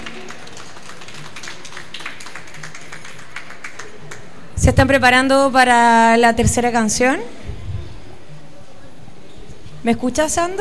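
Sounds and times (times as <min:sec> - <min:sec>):
crowd applause: 0:00.0 - 0:04.4
speech: 0:04.6 - 0:07.4, 0:09.8 - 0:10.5.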